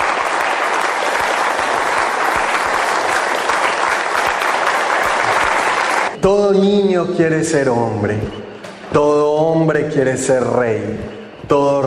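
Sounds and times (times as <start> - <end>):
crowd applauding: 0.0 - 6.2
speech: 6.2 - 11.8.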